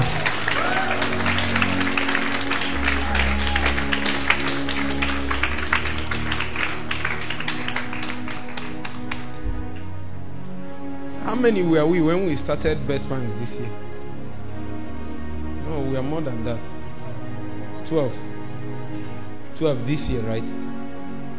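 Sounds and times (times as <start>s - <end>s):
audience clapping: 0.0s - 10.0s
speech: 11.4s - 13.8s, 15.9s - 16.8s, 17.9s - 18.3s, 18.9s - 20.8s.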